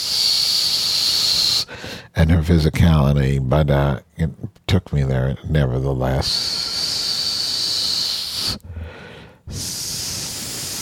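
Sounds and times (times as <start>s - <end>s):
air hissing through gaps in a person's teeth: 0.0s - 1.7s, 6.2s - 8.7s, 9.5s - 10.8s
speech: 2.1s - 6.6s.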